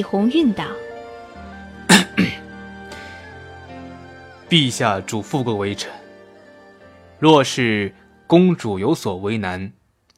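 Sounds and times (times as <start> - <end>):
speech: 0.0 - 0.9, 4.5 - 6.0, 7.2 - 9.8
quiet tones: 0.0 - 9.8
man coughing lightly to clear his throat: 1.9 - 2.5.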